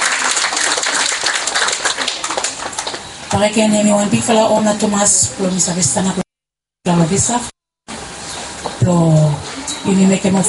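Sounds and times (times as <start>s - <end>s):
audience applause: 0.0s - 3.1s
speech: 3.3s - 6.2s, 7.1s - 7.5s, 8.9s - 10.4s.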